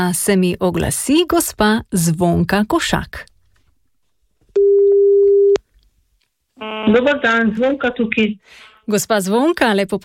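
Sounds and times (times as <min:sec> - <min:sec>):
speech: 0:00.0 - 0:03.3, 0:06.6 - 0:10.0
telephone call ringing tone: 0:04.6 - 0:05.6.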